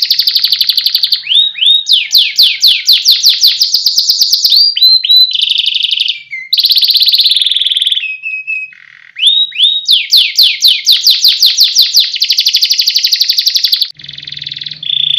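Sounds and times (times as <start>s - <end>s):
competition canary singing: 0.0s - 15.1s.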